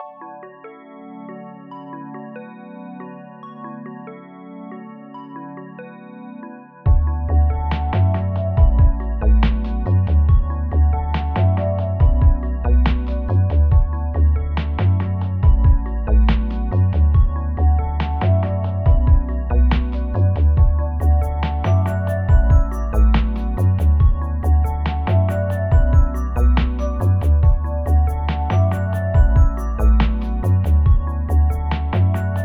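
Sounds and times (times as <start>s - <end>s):
happy chill lo-fi beat: 6.9s - 32.4s.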